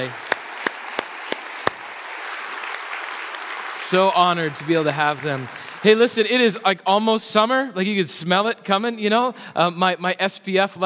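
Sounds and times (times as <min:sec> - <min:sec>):
speech: 0:00.0 - 0:00.2, 0:03.9 - 0:10.8
applause for veterans: 0:00.0 - 0:06.5.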